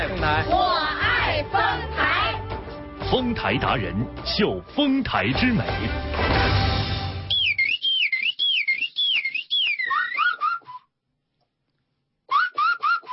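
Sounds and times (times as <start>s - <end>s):
speech: 0.0s - 2.0s, 3.1s - 6.5s
bird song imitated by blowing on a toothpaste tube: 7.3s - 10.9s, 12.3s - 13.1s.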